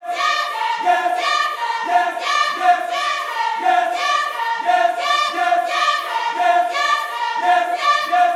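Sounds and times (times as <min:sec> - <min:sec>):
gospel vocals: 0:00.0 - 0:08.3.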